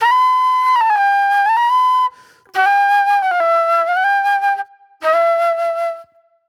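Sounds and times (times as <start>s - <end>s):
flute: 0.0s - 6.4s.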